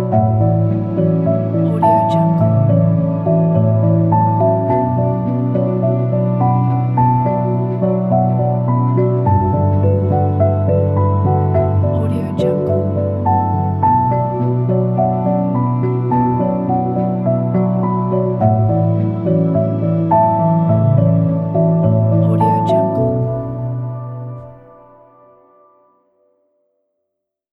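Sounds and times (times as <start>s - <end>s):
calm documentary music: 0.0s - 26.2s.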